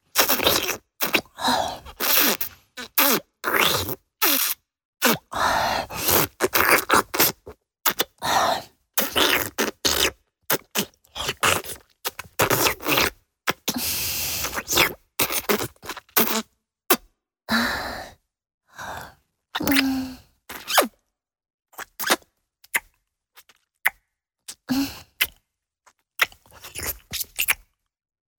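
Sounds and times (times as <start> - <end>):
high-pitched sucking mouth sounds: 0.0 - 8.2, 9.0 - 17.0, 19.6 - 20.9, 21.8 - 25.4, 26.2 - 27.6.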